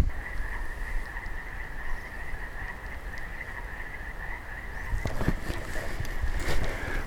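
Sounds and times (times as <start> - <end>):
Western toads calling in a high steady trill: 0.0 - 7.0
footsteps: 5.0 - 7.0.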